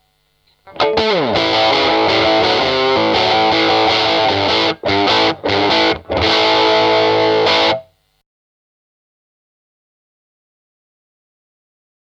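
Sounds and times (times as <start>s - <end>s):
crunchy 5W valve guitar amp tone: 0.5s - 8.0s.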